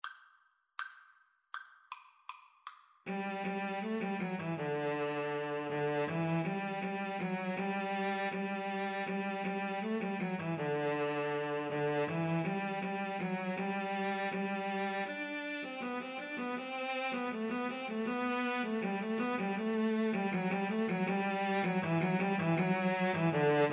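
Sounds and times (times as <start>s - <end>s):
cello duet: 3.1s - 23.7s.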